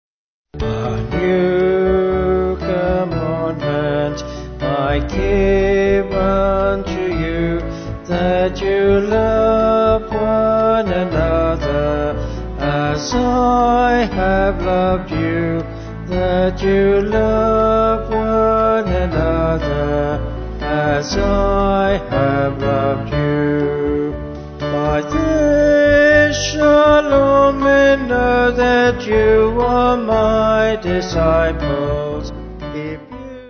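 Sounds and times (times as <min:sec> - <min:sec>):
vocal band singing: 0:00.6 - 0:33.4.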